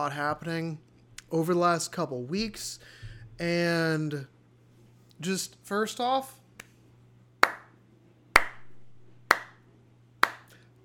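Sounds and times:
speech: 0:00.0 - 0:04.3, 0:05.2 - 0:06.4
hand clapping: 0:07.4 - 0:07.8, 0:08.4 - 0:09.6, 0:10.2 - 0:10.6.

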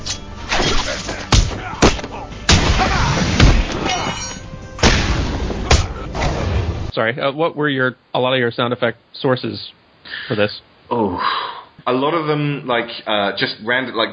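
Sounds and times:
video game punches and body thuds: 0:00.5 - 0:04.2, 0:04.8 - 0:06.4
speech: 0:07.0 - 0:14.1.

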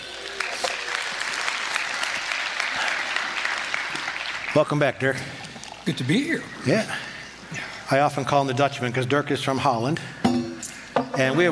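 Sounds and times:
audience applause greeting a weekend team leader on stage: 0:00.0 - 0:05.0
speech: 0:04.6 - 0:10.1, 0:11.2 - 0:11.5.

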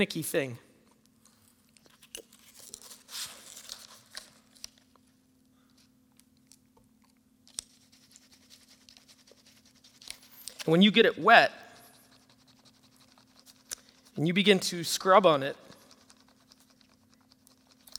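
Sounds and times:
speech: 0:00.0 - 0:00.6, 0:10.6 - 0:11.6, 0:14.2 - 0:15.6
ink pen drawing a small squiggle on papyrus: 0:07.5 - 0:10.8, 0:11.6 - 0:14.3, 0:15.5 - 0:17.9.

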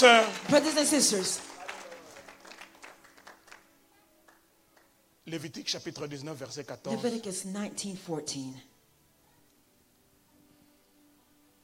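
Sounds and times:
speech: 0:00.0 - 0:01.6, 0:05.3 - 0:08.7
church congregation applauding during a service: 0:01.4 - 0:03.7.

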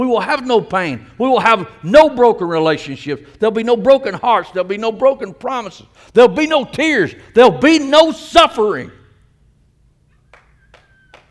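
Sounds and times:
speech: 0:00.0 - 0:09.0
audience clapping: 0:10.3 - 0:11.2.

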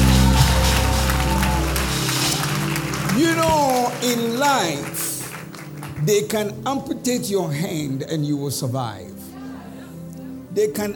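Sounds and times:
crowd clapping: 0:00.0 - 0:06.5
low sustained musical tones: 0:00.0 - 0:10.9
speech: 0:03.4 - 0:05.0, 0:06.0 - 0:09.2, 0:10.6 - 0:10.9.

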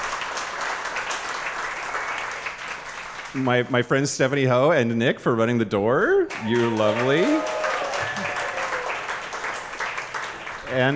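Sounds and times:
audience applause: 0:00.0 - 0:03.6, 0:06.3 - 0:10.9
speech: 0:03.3 - 0:07.6, 0:10.7 - 0:10.9.

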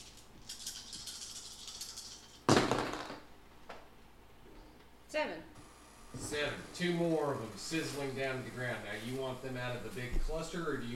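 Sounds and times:
dice rattling in a hand or cup: 0:00.4 - 0:03.2
speech: 0:05.2 - 0:05.5, 0:06.2 - 0:10.9.

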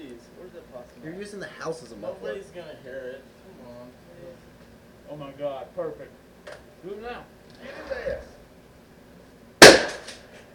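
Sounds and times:
speech: 0:01.0 - 0:04.5, 0:05.1 - 0:08.3
gunshot fired at a possum in a backyard at night: 0:09.6 - 0:10.4.

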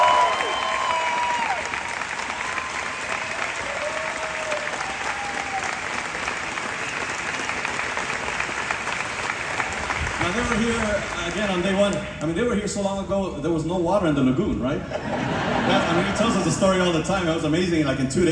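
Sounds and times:
audience applause: 0:00.0 - 0:12.3
speech: 0:10.5 - 0:18.2
laughter: 0:14.8 - 0:16.8.

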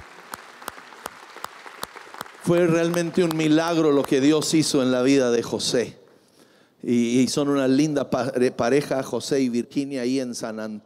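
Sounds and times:
audience applause: 0:00.0 - 0:03.8
sharp loud claps: 0:00.0 - 0:04.4
speech: 0:02.5 - 0:06.0, 0:06.8 - 0:10.8.

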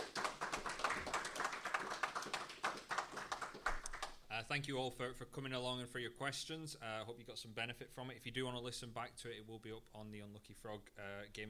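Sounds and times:
room full of people applauding: 0:00.0 - 0:04.2
speech: 0:04.4 - 0:11.4.

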